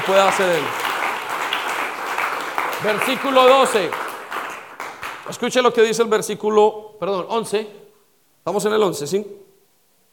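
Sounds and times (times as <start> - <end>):
speech: 0.0 - 0.9, 2.8 - 4.0, 5.3 - 7.8, 8.4 - 9.4
audience applause: 0.0 - 5.4.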